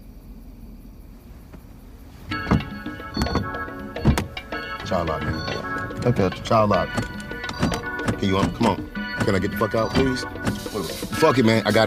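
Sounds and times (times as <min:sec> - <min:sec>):
car power window motor whirring: 0:01.5 - 0:11.2
speech: 0:04.9 - 0:07.2, 0:08.2 - 0:11.8.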